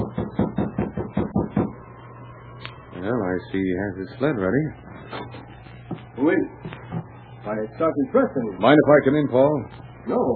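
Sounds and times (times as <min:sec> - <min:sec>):
knocking on a wooden cabin door: 0:00.0 - 0:01.8
speech: 0:03.0 - 0:05.4, 0:06.2 - 0:06.8, 0:07.4 - 0:10.3.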